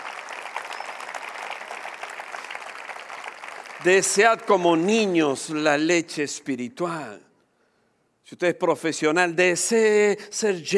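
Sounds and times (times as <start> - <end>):
audience applause: 0.0 - 4.5
speech: 3.8 - 7.3, 8.3 - 10.7.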